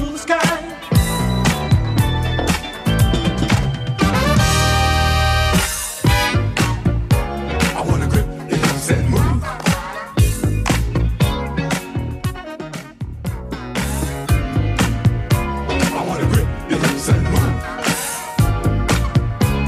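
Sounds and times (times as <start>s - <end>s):
80s drum machine beat: 0.0s - 19.6s.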